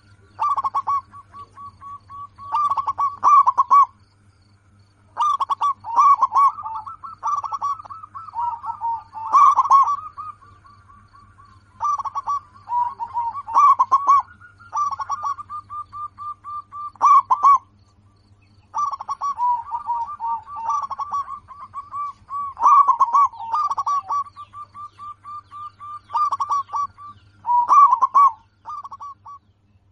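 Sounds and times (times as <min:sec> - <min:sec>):
zebra dove song: 0:00.0 - 0:04.0, 0:05.1 - 0:29.5.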